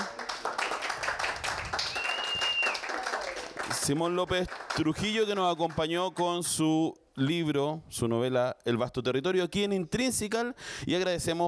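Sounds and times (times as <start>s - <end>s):
audience applause: 0.0s - 5.9s
speech: 3.9s - 11.4s.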